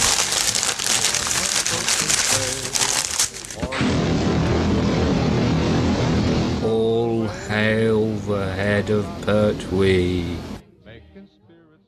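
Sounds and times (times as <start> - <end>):
Christmas present wrapping paper crinkling and ripping: 0.0 - 3.7
steady dense roar: 3.0 - 10.6
speech: 8.3 - 10.5.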